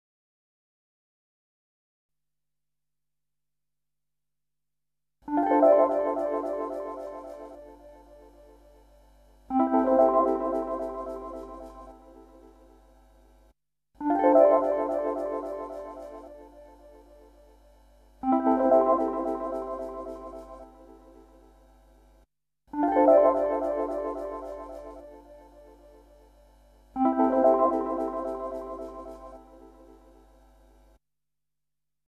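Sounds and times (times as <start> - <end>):
electric piano: 5.3 - 8.5, 9.5 - 12.4, 14.0 - 17.0, 18.2 - 21.2, 22.7 - 25.8, 27.0 - 29.7.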